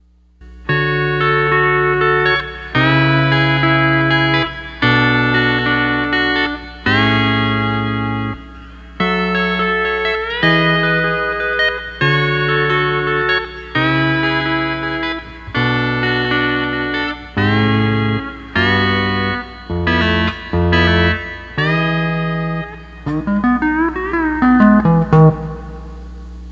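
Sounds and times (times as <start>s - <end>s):
12-string lap guitar playing: 0.4s - 26.4s.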